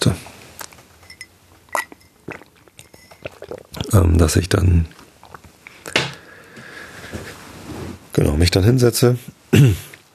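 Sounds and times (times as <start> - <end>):
speech: 0.0 - 0.3, 4.0 - 5.0, 8.4 - 9.8
drinking water: 0.6 - 5.5.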